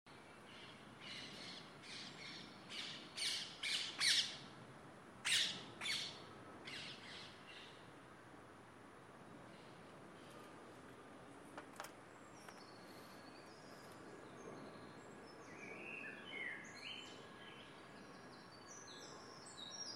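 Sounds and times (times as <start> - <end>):
Saturday morning birdsong: 0.1 - 4.5, 5.2 - 7.9, 11.6 - 19.9.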